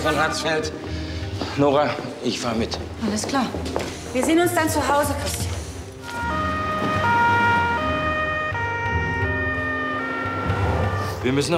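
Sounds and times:
speech: 0.0s - 5.5s, 11.2s - 11.5s
ambulance siren two-tone call: 6.0s - 11.5s.

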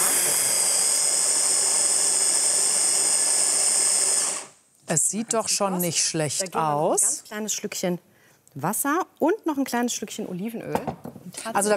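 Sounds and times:
electric blender mixing food: 0.0s - 4.6s
speech: 4.9s - 11.7s.

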